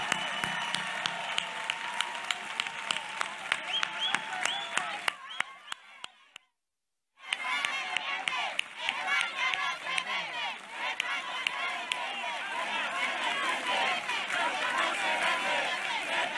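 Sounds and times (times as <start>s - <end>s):
audience applause: 0.0s - 6.2s, 7.3s - 16.3s
crowd cheering: 0.0s - 6.4s, 7.2s - 16.3s
crowd murmur: 7.4s - 16.3s.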